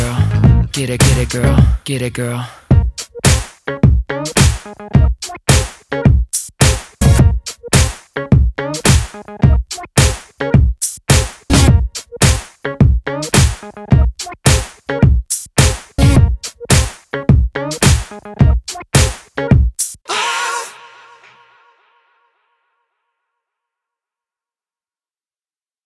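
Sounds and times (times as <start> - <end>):
107 bpm music beat: 0.0 - 1.8, 2.7 - 20.0.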